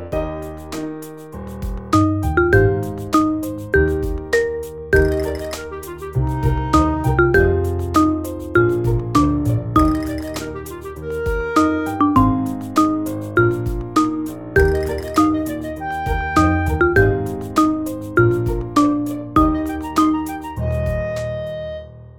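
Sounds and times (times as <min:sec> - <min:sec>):
instrumental dance music: 0:00.1 - 0:21.7.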